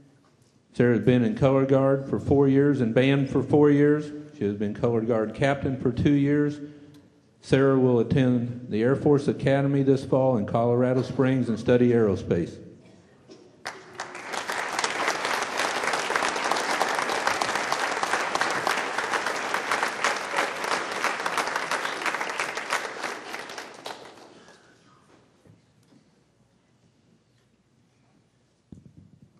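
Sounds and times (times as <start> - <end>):
speech: 0.8 - 6.8, 7.4 - 12.6
audience applause: 13.6 - 24.7.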